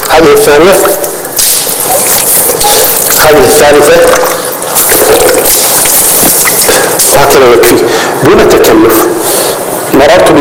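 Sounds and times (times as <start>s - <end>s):
speech: 0.2s - 0.9s, 3.2s - 4.5s, 7.3s - 10.4s
hand-scooped water splashing onto a face during wudu: 0.8s - 6.9s.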